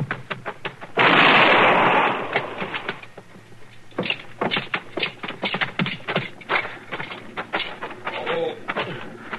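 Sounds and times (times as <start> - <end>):
rapid tapping and shuffling: 0.0 - 1.0, 2.3 - 9.3
gunshot in a western radio drama: 1.0 - 2.9.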